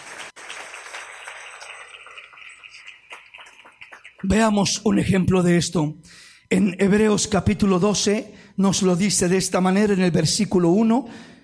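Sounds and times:
audience applause: 0.0s - 4.4s
speech: 4.2s - 11.4s.

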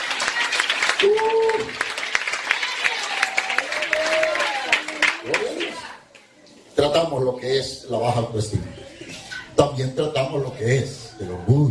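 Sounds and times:
audience applause: 0.0s - 6.0s
speech: 7.0s - 8.9s, 9.6s - 11.7s.

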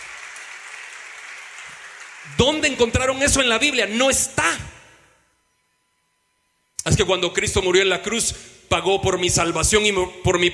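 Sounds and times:
audience applauding: 0.0s - 3.1s
speech: 2.2s - 4.6s, 7.0s - 10.5s.

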